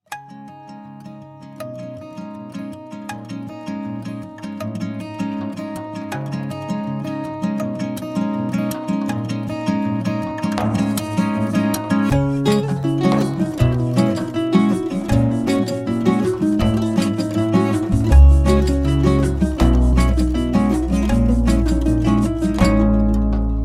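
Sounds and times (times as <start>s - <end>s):
acoustic guitar: 0.0s - 23.6s
bass: 10.1s - 23.6s.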